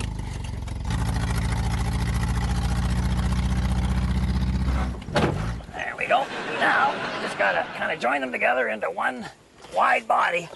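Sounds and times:
car engine running while car is guided alongside another car: 0:00.0 - 0:05.8
laughter: 0:06.0 - 0:08.4
speech: 0:06.1 - 0:10.5.

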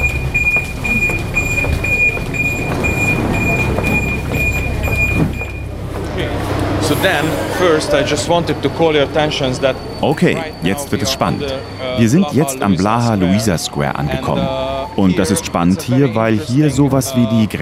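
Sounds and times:
rattling and clatter: 0:00.0 - 0:06.1
Budapest metro train ride rumbling: 0:00.0 - 0:17.2
speech: 0:07.0 - 0:17.6.

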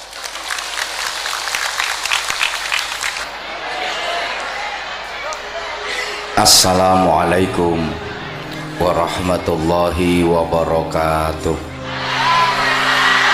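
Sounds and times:
audience applauding: 0:00.0 - 0:06.1, 0:12.0 - 0:13.3
crowd noise: 0:00.0 - 0:13.3
speech: 0:06.4 - 0:08.0, 0:08.8 - 0:11.7.

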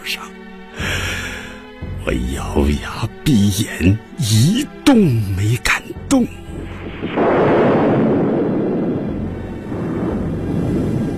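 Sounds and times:
speech: 0:00.1 - 0:00.4, 0:02.0 - 0:06.4
thunder clap: 0:06.7 - 0:11.1.

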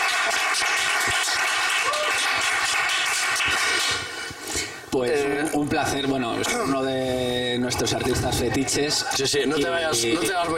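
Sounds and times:
audience applause for a guest artist at a live Christmas special: 0:00.0 - 0:04.3
speech: 0:05.0 - 0:10.5.

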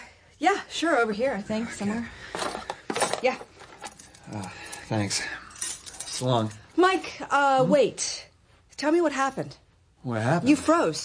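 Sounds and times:
speech: 0:00.4 - 0:02.5, 0:03.2 - 0:03.5, 0:04.3 - 0:05.4, 0:06.2 - 0:11.0
apartment keys jangling: 0:03.0 - 0:06.6.

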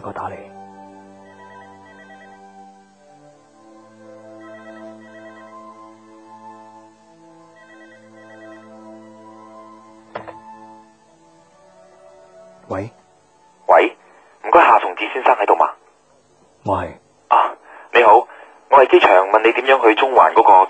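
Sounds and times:
speech: 0:00.0 - 0:00.6, 0:12.8 - 0:13.0, 0:14.6 - 0:15.8, 0:16.7 - 0:17.0, 0:18.8 - 0:20.6
telephone ringing: 0:01.2 - 0:02.7, 0:04.2 - 0:06.2, 0:07.4 - 0:09.6.

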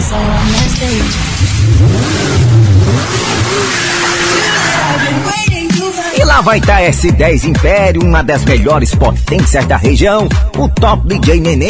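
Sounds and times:
motorcycle engine revving: 0:00.0 - 0:05.5
speech: 0:00.1 - 0:04.0, 0:06.4 - 0:11.6.

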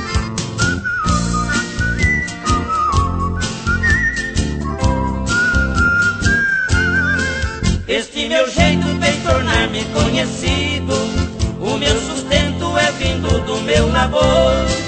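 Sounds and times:
whistled melody from a singing taxi driver: 0:00.0 - 0:07.9
loud steady instrumental accompaniment with a driving rhythm: 0:00.0 - 0:08.0, 0:08.6 - 0:14.8
speech: 0:09.3 - 0:14.8.

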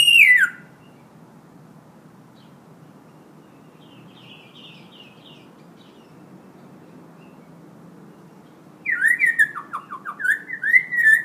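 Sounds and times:
Hill myna in full active song: 0:00.0 - 0:00.6, 0:08.9 - 0:11.2.

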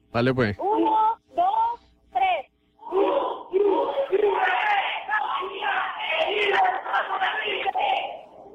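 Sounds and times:
speech: 0:00.2 - 0:00.8
group of students shouting a battle cry: 0:02.8 - 0:08.2.

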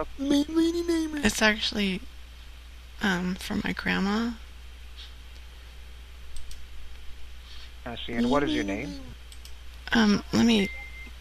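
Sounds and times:
speech: 0:00.0 - 0:02.1, 0:03.0 - 0:04.4, 0:07.9 - 0:09.2, 0:09.9 - 0:10.8
microwave beep: 0:10.4 - 0:11.2.

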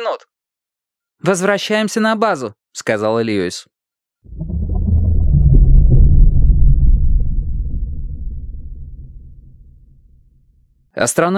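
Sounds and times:
speech: 0:00.0 - 0:00.4, 0:01.2 - 0:04.5, 0:11.0 - 0:11.3
storm wind gusts buffeting an astronauts' habitat module: 0:04.3 - 0:10.3.

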